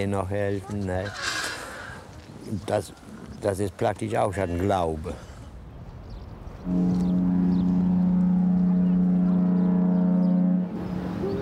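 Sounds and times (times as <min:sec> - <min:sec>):
speech: 0:00.0 - 0:01.4, 0:02.5 - 0:05.3, 0:06.6 - 0:07.0
faint noise: 0:00.0 - 0:09.6
boat horn long low blast: 0:06.6 - 0:11.4.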